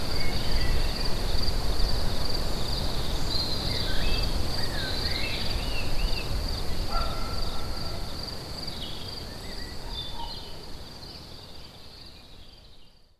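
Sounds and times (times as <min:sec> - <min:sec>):
crickets trilling at Lacoux: 0:00.0 - 0:09.8.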